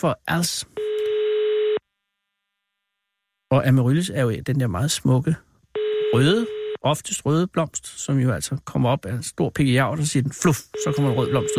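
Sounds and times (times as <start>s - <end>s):
speech: 0.0s - 0.9s, 3.5s - 5.5s, 6.1s - 11.5s
telephone ringing tone during call: 0.8s - 1.8s, 5.8s - 6.8s, 10.8s - 11.5s.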